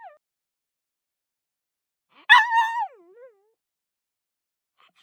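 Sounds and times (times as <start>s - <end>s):
pug yelping: 2.3s - 2.9s.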